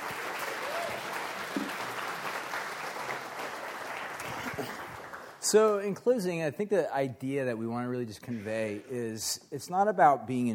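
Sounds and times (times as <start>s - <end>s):
round of applause: 0.0s - 5.5s
speech: 5.5s - 10.5s.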